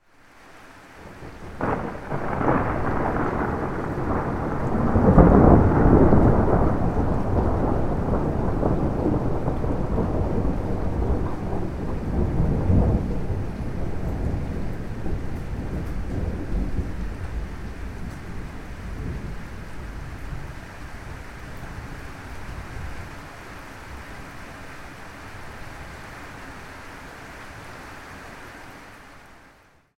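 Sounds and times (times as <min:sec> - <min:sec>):
thunder: 0:01.0 - 0:20.6.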